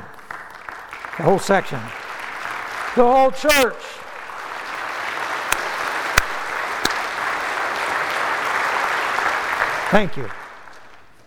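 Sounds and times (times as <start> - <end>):
whole audience clapping together: 0.0 - 11.2
speech: 1.2 - 2.0, 3.0 - 4.0, 9.9 - 10.4.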